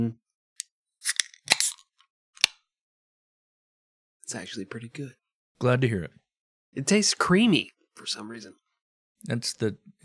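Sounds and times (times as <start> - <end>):
speech: 0.0 - 0.2, 4.3 - 6.2, 6.8 - 8.6, 9.2 - 10.0
can of Happy Dad seltzer tab cracking open: 1.0 - 2.6.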